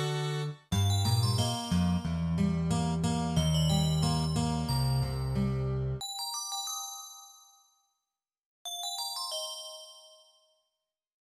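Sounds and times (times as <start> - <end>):
acoustic music: 0.0 - 6.0.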